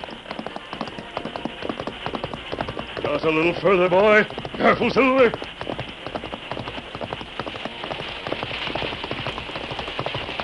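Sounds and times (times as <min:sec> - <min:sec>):
galloping horse hooves: 0:00.0 - 0:10.4
speech: 0:03.1 - 0:05.6.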